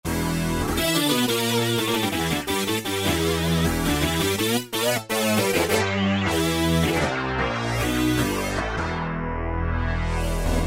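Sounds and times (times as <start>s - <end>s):
E-mu Morpheus synthesizer: 0.1s - 10.6s.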